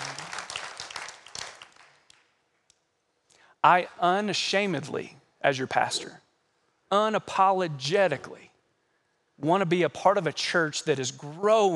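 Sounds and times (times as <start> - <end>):
audience clapping: 0.0 - 2.4
speech: 3.6 - 6.2, 6.9 - 8.5, 9.4 - 11.7.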